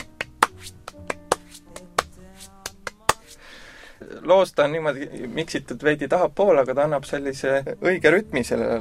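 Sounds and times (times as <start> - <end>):
hand claps used as percussion: 0.0 - 3.4
soft sustained musical backing: 0.0 - 8.7
speech: 4.2 - 8.7.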